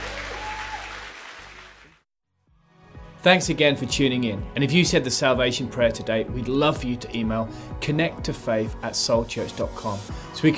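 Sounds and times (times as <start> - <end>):
audience applause: 0.0 - 2.0
speech: 3.2 - 10.5.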